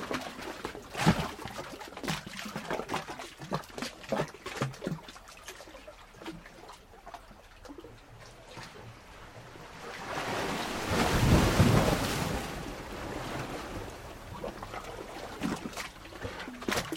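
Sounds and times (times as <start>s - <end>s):
sea water surging and glugging through a hollow coastal rock chamber: 0.0s - 16.9s.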